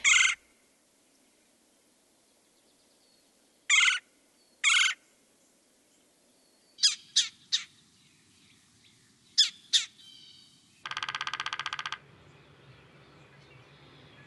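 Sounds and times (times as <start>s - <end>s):
red-bellied woodpecker rolling churring calls: 0.0s - 0.4s, 3.7s - 4.0s, 4.6s - 5.0s, 6.8s - 7.7s, 9.4s - 12.0s.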